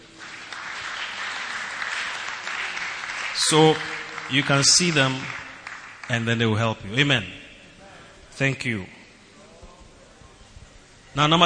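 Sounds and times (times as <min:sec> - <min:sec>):
audience clapping: 0:00.0 - 0:06.7
speech: 0:03.4 - 0:05.4, 0:06.1 - 0:07.4, 0:08.4 - 0:09.0, 0:11.2 - 0:11.4.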